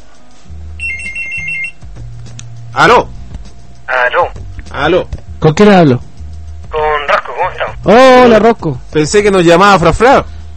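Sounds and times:
telephone ringing: 0:00.8 - 0:01.8
speech: 0:02.8 - 0:03.2, 0:04.8 - 0:06.1, 0:07.8 - 0:10.3.

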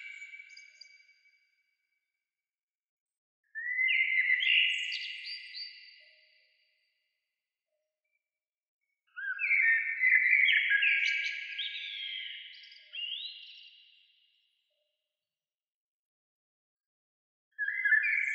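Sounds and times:
bird singing twittering phrases: 0:00.0 - 0:01.4, 0:03.5 - 0:06.3, 0:09.1 - 0:14.0, 0:17.6 - 0:18.3.

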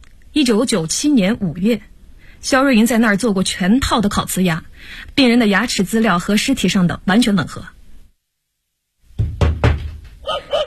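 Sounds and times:
speech: 0:00.4 - 0:07.8
knocking on a door: 0:09.2 - 0:10.2.

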